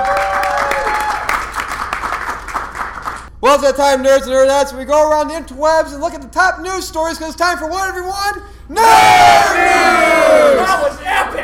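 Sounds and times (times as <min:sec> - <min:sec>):
applause: 0:00.0 - 0:03.3
speech: 0:03.4 - 0:11.4.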